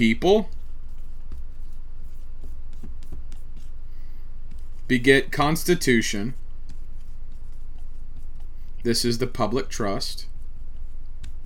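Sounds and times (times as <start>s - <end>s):
speech: 0.0s - 0.6s, 4.9s - 6.4s, 8.8s - 10.3s
pen strokes drawing a diagram by hand: 0.0s - 3.8s, 4.5s - 11.4s.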